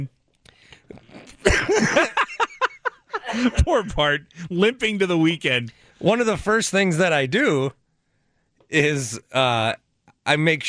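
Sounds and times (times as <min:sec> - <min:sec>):
speech: 0:00.9 - 0:02.2, 0:03.3 - 0:07.8, 0:08.7 - 0:10.6
harsh coughing: 0:01.3 - 0:02.2
laughter: 0:01.5 - 0:04.0.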